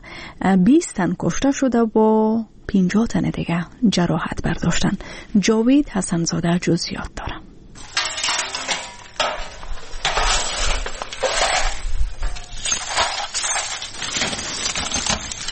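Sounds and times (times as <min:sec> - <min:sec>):
speech: 0:00.4 - 0:07.4
broken glass being gathered up: 0:07.8 - 0:15.5.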